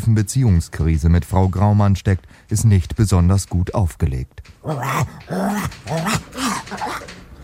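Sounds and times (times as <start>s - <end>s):
speech: 0.0s - 7.1s
wire-haired dachshund growling after its tail is stepped on: 4.6s - 7.1s.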